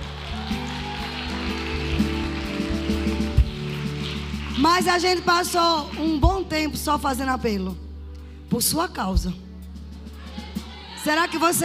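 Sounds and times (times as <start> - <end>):
audience applause: 0.0 - 4.7
speech: 4.6 - 7.8, 8.5 - 9.4, 11.0 - 11.6.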